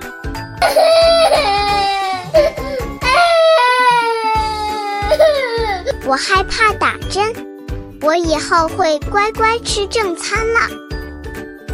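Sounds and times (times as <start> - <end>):
speech: 0.6 - 1.0, 6.1 - 10.8
child crying loudly: 0.6 - 6.1.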